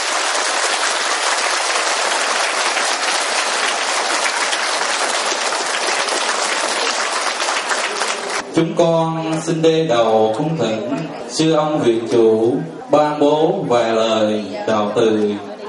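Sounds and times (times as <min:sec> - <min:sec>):
large audience applause welcoming a speaker: 0:00.0 - 0:08.4
speech: 0:08.6 - 0:15.5.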